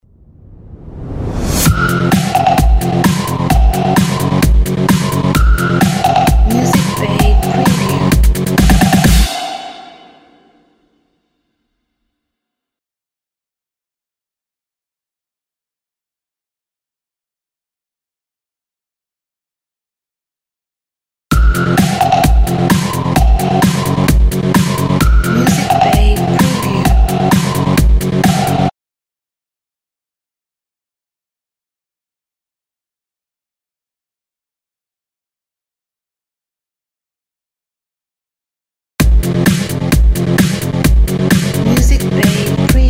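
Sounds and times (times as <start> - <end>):
power techno opener: 1.6 - 9.9, 21.3 - 28.7, 39.0 - 42.8.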